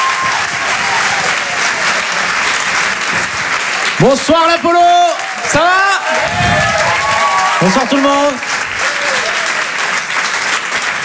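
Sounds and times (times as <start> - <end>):
whistle or cheer: 0.0 - 2.3, 4.6 - 9.8
crowd applause: 0.0 - 11.0
speech: 4.0 - 6.5, 7.6 - 8.5.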